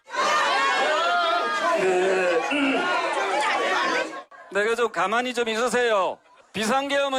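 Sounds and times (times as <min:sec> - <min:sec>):
supporters booing at campaign office opening: 0:00.0 - 0:04.3
speech: 0:04.5 - 0:07.1.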